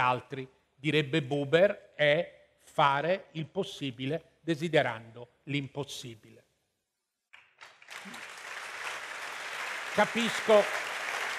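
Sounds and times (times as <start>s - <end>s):
speech: 0.0s - 6.4s, 7.9s - 8.3s, 10.0s - 10.8s
audience applause: 7.6s - 11.3s.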